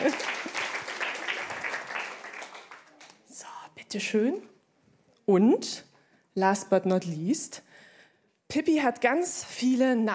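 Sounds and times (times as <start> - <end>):
audience clapping: 0.0 - 3.3
speech: 3.9 - 4.5, 5.3 - 7.7, 8.5 - 10.1.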